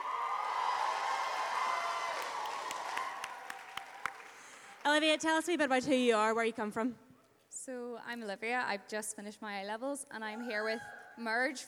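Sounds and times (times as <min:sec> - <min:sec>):
audience cheering: 0:00.0 - 0:04.6
speech: 0:04.9 - 0:07.0, 0:07.7 - 0:11.6.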